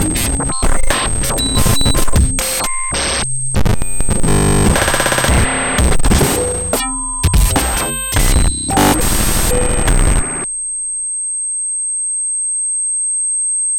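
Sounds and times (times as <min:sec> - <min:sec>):
extreme YM2612 FM chip sound techniques: 0:00.0 - 0:10.5.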